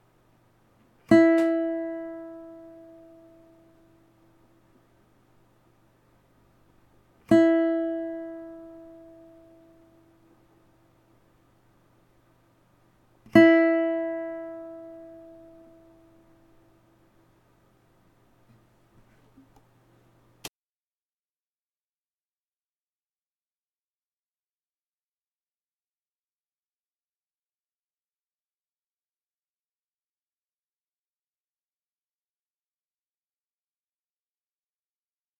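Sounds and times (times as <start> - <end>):
Spanish guitar first string E plucked for tuning: 1.1 - 4.0, 7.3 - 10.1, 13.3 - 16.5.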